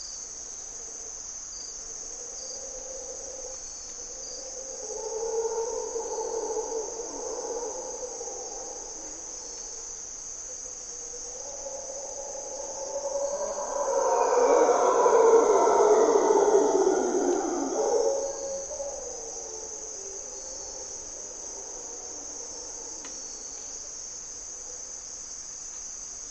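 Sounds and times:
insect drone: 0.0s - 26.2s
mantled howler monkeys roaring: 12.8s - 19.5s.

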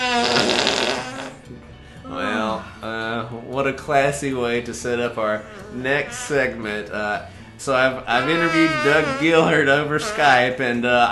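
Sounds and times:
fart: 0.0s - 1.6s
speech: 3.7s - 11.1s.

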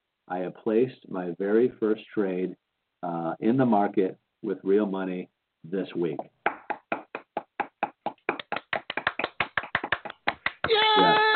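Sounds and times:
speech: 0.3s - 6.4s
hand claps: 6.2s - 10.8s
vocal cheer: 10.6s - 11.3s.

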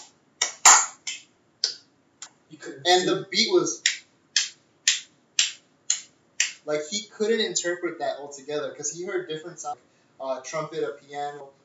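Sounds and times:
hands clapping irregularly, off the beat: 0.0s - 2.4s, 3.8s - 6.7s
speech: 2.5s - 3.9s, 6.7s - 11.6s.

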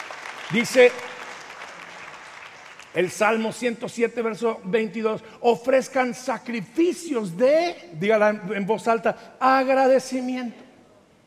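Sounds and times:
audience applause: 0.0s - 3.0s
speech: 0.5s - 1.1s, 2.9s - 10.6s.

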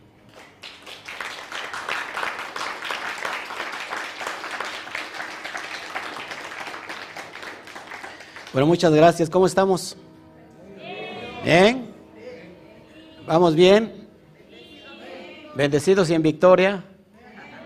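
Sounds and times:
audience applause: 0.3s - 8.9s
speech: 8.6s - 10.0s, 11.5s - 11.8s, 13.3s - 14.0s, 15.6s - 16.9s.

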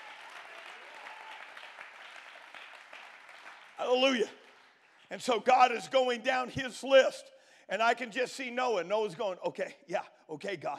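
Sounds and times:
audience clapping hands: 0.0s - 5.3s
speech: 3.8s - 4.4s, 5.1s - 10.7s.

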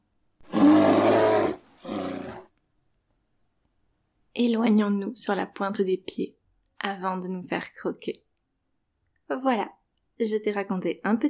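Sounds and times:
dragon roaring: 0.4s - 2.5s
speech: 4.4s - 8.2s, 9.3s - 11.2s.

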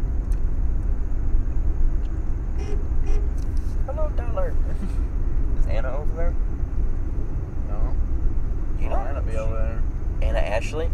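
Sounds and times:
car engine rumble: 0.0s - 10.9s
road noise: 0.0s - 10.9s
car horn tooting: 2.6s - 3.4s
speech: 4.1s - 6.6s, 8.8s - 10.9s.

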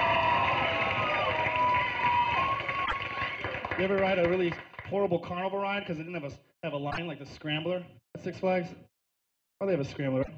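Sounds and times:
audience applause and cheering for a comedian: 0.0s - 4.9s
speech: 3.8s - 8.9s, 9.6s - 10.3s.

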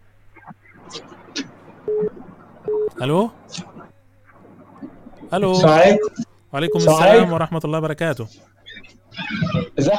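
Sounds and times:
telephone line beeps as a listener's call connects: 1.8s - 3.0s, 5.9s - 7.3s
speech: 3.0s - 3.6s, 5.3s - 8.5s.

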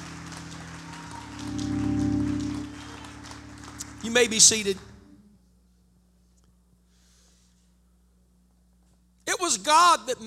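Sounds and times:
audience clapping hands: 0.0s - 5.0s
speech: 4.0s - 4.9s, 9.7s - 10.2s.

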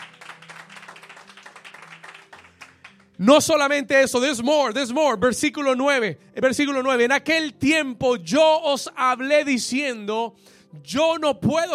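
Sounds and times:
audience clapping: 0.0s - 3.2s
speech: 3.2s - 11.7s.

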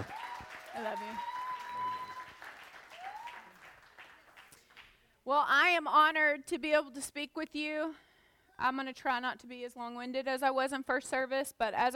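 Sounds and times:
audience clapping hands: 0.0s - 5.1s
speech: 0.8s - 2.0s, 5.2s - 8.0s, 8.6s - 11.9s.

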